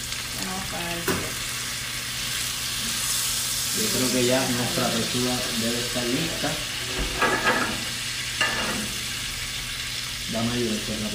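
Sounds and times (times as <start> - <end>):
wine poured into a hot pan sizzling to make a sauce for chicken breast: 0.0 - 11.1
speech: 3.8 - 7.4, 10.3 - 11.1.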